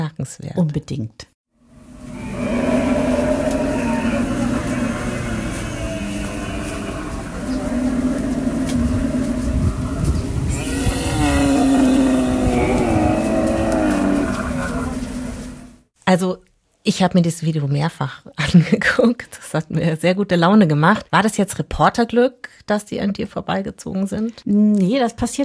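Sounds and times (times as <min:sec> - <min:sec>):
speech: 0:00.1 - 0:01.3, 0:16.1 - 0:25.4
herd of dromedaries passing by: 0:02.0 - 0:15.8.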